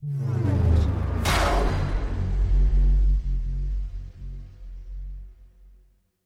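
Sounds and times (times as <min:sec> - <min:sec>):
bass drop: 0:00.0 - 0:05.9.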